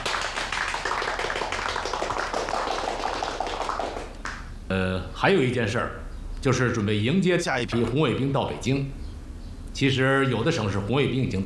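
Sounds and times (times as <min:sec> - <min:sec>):
group applause welcoming someone: 0:00.0 - 0:04.6
speech: 0:04.7 - 0:09.0, 0:09.8 - 0:11.4.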